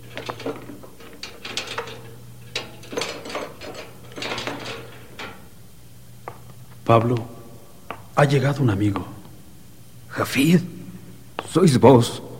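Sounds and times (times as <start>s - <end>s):
heavy metal cell door creaking and clanking open: 0.0s - 5.7s
speech: 6.9s - 7.4s, 8.2s - 9.2s, 10.2s - 10.7s, 11.6s - 12.3s.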